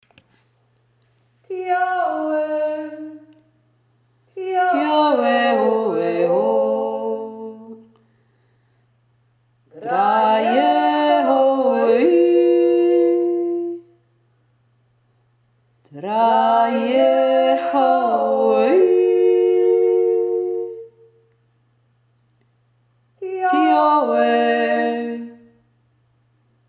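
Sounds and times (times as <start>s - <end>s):
two voices singing: 1.5s - 3.5s, 4.4s - 8.0s, 9.7s - 13.9s, 15.9s - 21.0s, 23.2s - 25.5s.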